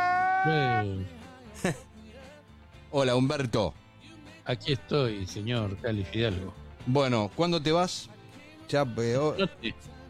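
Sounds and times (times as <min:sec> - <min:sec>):
recorded crying played back: 0:00.0 - 0:01.2
speech: 0:00.4 - 0:01.9, 0:02.9 - 0:03.8, 0:04.5 - 0:10.0.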